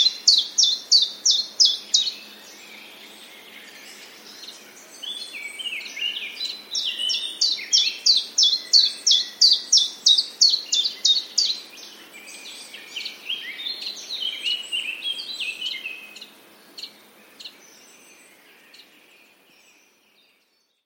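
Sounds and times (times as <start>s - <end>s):
common chiffchaff singing in a large meadow: 0.0s - 20.8s.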